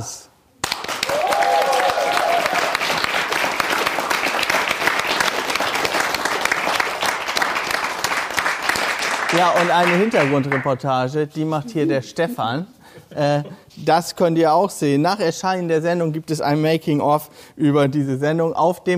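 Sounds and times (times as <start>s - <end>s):
speech: 0.0s - 0.3s, 9.4s - 18.9s
audience applause: 0.6s - 10.7s.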